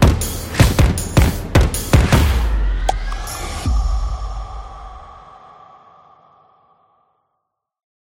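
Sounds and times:
football music: 0.0 - 5.1.

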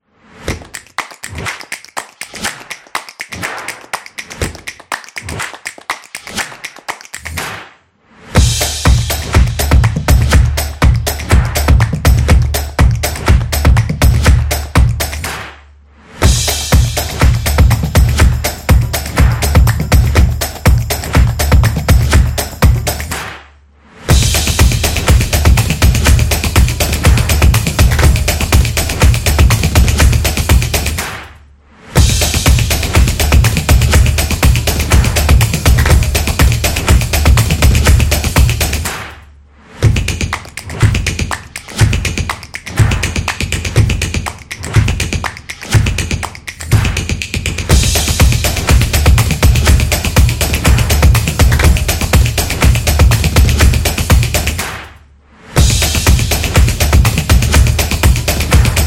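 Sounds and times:
clapping: 0.5 - 7.8, 10.6 - 15.6, 18.1 - 23.5, 29.0 - 31.3, 37.3 - 39.2, 40.2 - 47.7, 52.6 - 55.0
drumming: 8.4 - 15.5, 16.2 - 23.4, 24.1 - 31.3, 32.0 - 39.2, 39.8 - 54.9, 55.6 - 58.8.

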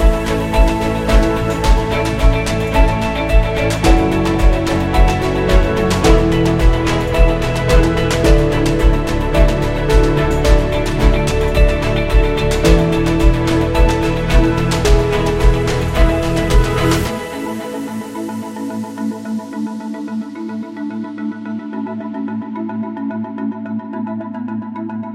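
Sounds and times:
soft ambient music: 0.0 - 25.1.

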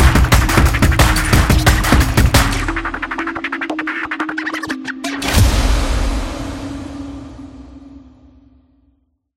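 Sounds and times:
fast beat: 0.0 - 5.5.

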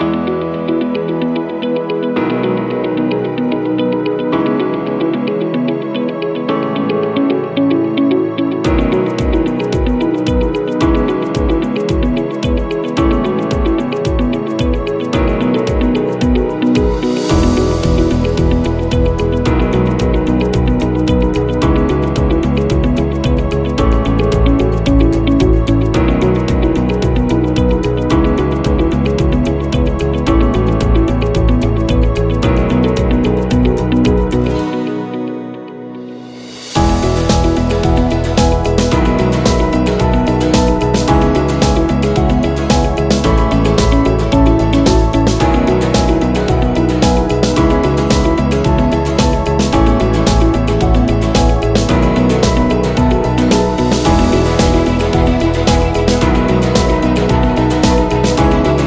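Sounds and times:
corporate background music: 0.0 - 58.8.

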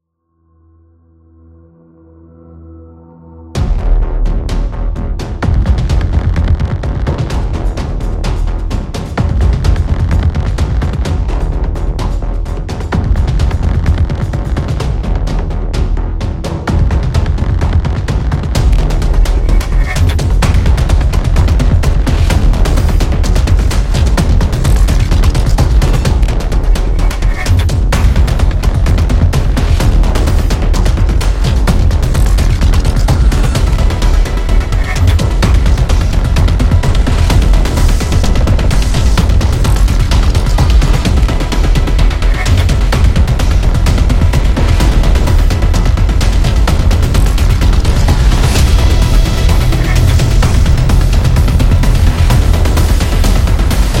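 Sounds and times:
dark suspense music: 0.2 - 53.9.

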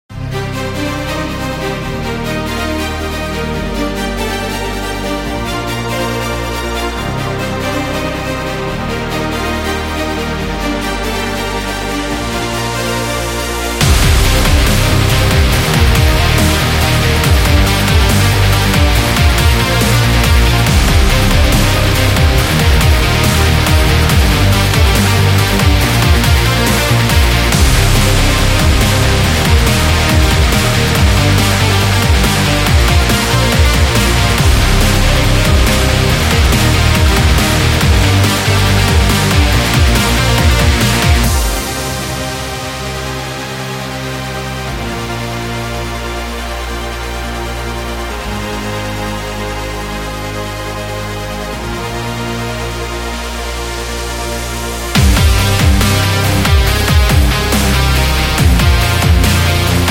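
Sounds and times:
extreme action music: 0.0 - 59.8.

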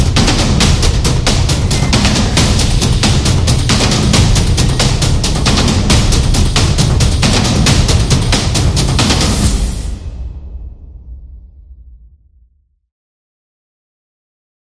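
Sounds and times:
battle drum: 0.0 - 10.7.

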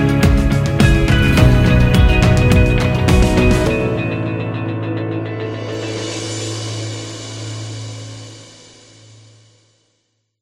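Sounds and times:
optimistic corporate music: 0.0 - 6.6.

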